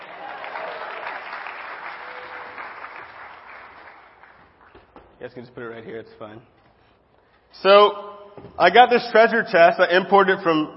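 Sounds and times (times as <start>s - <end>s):
audience round of applause: 0.0s - 4.8s
speech: 5.2s - 6.6s, 7.6s - 10.7s.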